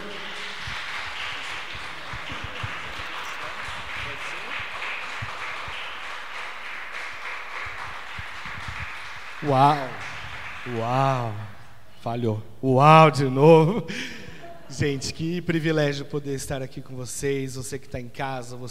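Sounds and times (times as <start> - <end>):
audience applause: 0.0 - 11.6
speech: 9.4 - 18.7.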